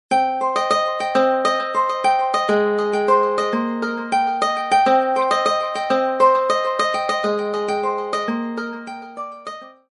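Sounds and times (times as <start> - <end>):
guitar ringtone: 0.1 - 9.8.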